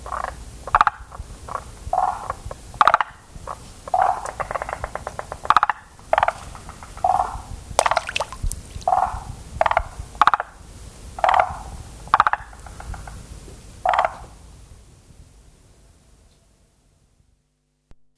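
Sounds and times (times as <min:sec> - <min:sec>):
forest green tree frog croaking: 0:00.0 - 0:14.4.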